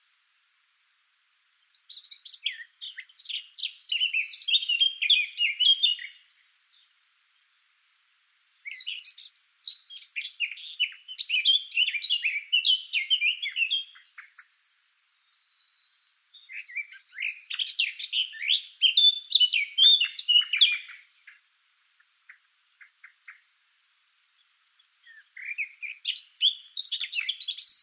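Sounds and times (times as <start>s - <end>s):
Eurasian blackcap Sylvia atricapilla singing: 1.5s - 6.9s, 8.4s - 21.6s, 24.8s - 27.8s.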